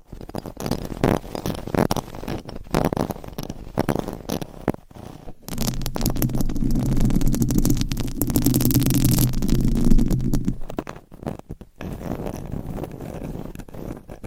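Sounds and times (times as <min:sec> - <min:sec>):
rubbing and scraping against the microphone: 0:00.4 - 0:14.2
sharp clicks and pops: 0:05.4 - 0:11.0
low hum: 0:05.5 - 0:10.8.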